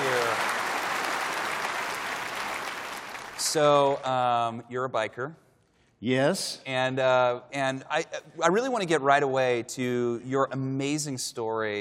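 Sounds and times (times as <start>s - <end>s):
audience applause welcoming a guest: 0.0s - 4.0s
speech: 3.5s - 5.4s, 6.0s - 11.7s.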